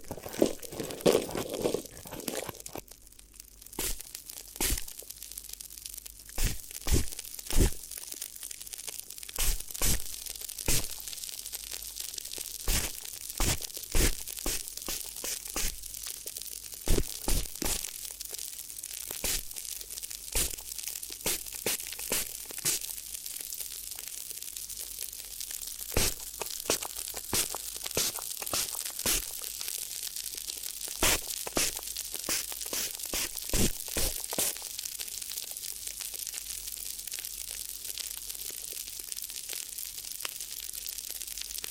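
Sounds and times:
crinkling and crumpling: 0.0 - 41.6
faint hiss: 3.6 - 8.5, 9.3 - 18.0, 18.7 - 30.0, 30.9 - 35.6.

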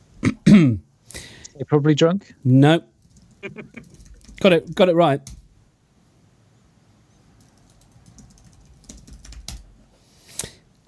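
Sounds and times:
speech: 1.6 - 5.4
typing on a computer keyboard: 3.0 - 5.4, 7.4 - 9.7.

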